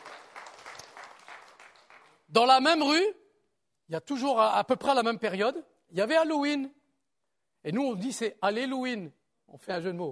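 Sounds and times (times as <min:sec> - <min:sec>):
audience applauding: 0:00.0 - 0:02.3
speech: 0:02.3 - 0:03.2, 0:03.9 - 0:06.8, 0:07.6 - 0:10.1.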